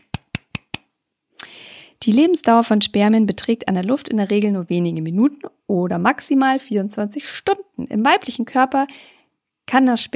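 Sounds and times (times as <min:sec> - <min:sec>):
brief applause, hands clapping: 0:00.0 - 0:00.9
speech: 0:02.0 - 0:10.1.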